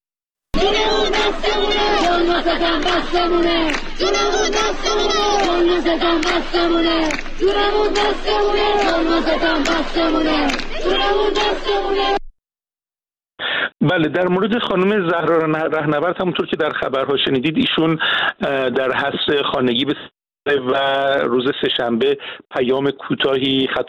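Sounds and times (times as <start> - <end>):
students chanting in unison at a rally at the University of Science and Culture in Tehran: 0.6 - 12.3
speech: 2.4 - 12.2, 13.8 - 23.8.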